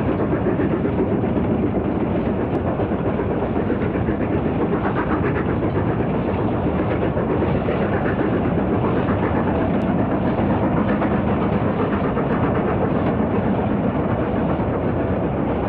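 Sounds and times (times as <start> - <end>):
Rio Grande Western steam locomotive at a station: 0.0 - 15.6.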